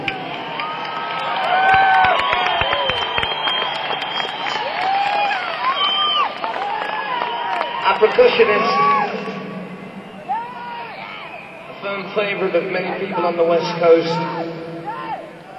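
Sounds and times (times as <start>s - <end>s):
sliding whistles: 0.0s - 7.9s, 9.7s - 11.8s
whoops and cheers: 0.0s - 11.8s
crowd applauding: 0.0s - 15.5s
speech: 8.0s - 9.0s, 12.2s - 14.7s.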